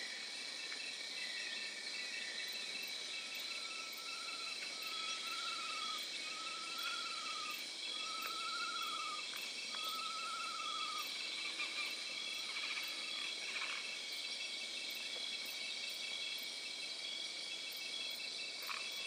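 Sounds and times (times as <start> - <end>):
tropical night ambience: 0.0 - 19.0.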